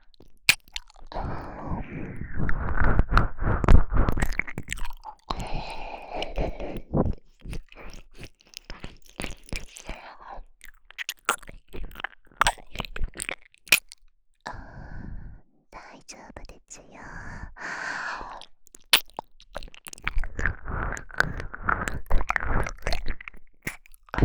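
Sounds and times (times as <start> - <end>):
ear licking sounds for falling asleep: 0.1 - 1.6, 2.4 - 14.1, 18.3 - 24.1.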